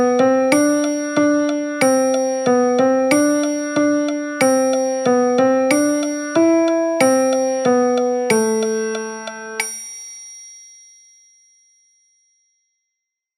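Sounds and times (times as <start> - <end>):
piano music: 0.0 - 9.7.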